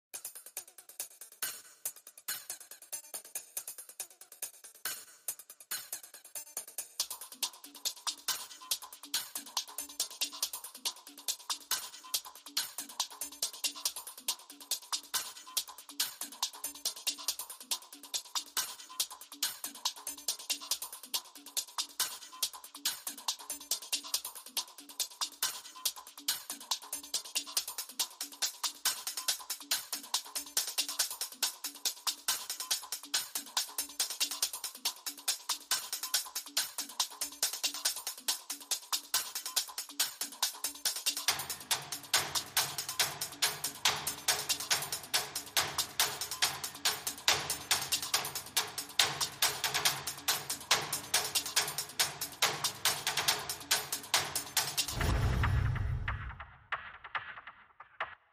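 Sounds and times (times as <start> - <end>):
drums: 0.1 - 58.3
bass: 54.9 - 56.4.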